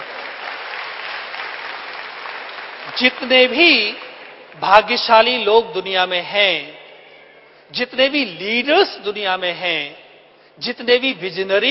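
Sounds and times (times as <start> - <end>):
audience applause for winners of a personality quiz: 0.0 - 4.6
speech: 3.0 - 4.0, 4.6 - 6.8, 7.7 - 10.0, 10.6 - 11.6.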